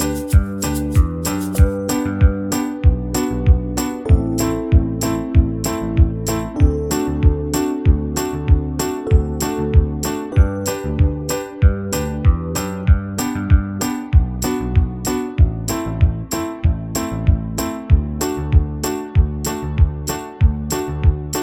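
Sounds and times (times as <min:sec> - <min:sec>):
slower banjo backing track in the key of G: 0:00.0 - 0:21.4.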